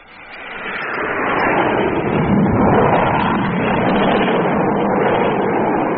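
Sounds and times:
spaceship flying fast and low overhead: 0:00.0 - 0:05.9.

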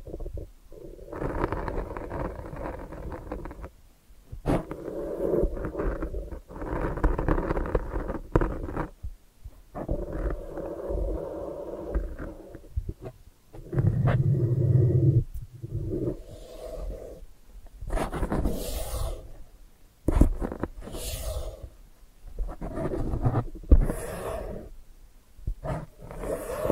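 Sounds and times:
low muffled rubbing and rumbling: 0:01.1 - 0:03.7, 0:04.4 - 0:09.1, 0:09.7 - 0:19.5, 0:20.1 - 0:21.8, 0:22.3 - 0:24.8, 0:25.5 - 0:26.6
bright scratchy strokes and sharp taps: 0:01.1 - 0:19.5, 0:20.1 - 0:24.7, 0:25.5 - 0:26.6.

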